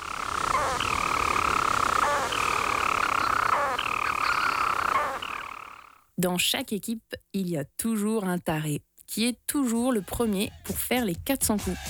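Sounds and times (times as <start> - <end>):
storm petrel song: 0.0 - 6.1
speech: 6.2 - 11.8.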